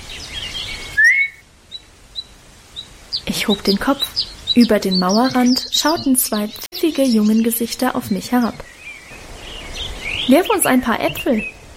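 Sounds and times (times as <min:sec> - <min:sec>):
bird-like twittering: 0:00.1 - 0:11.6
soft but sharp whistle: 0:01.0 - 0:01.4
speech: 0:03.3 - 0:08.7, 0:10.3 - 0:11.6.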